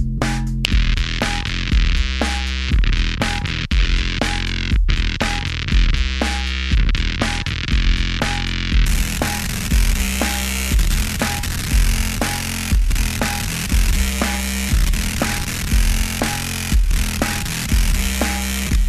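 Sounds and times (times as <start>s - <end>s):
Moog synthesizer bass: 0.0s - 18.8s.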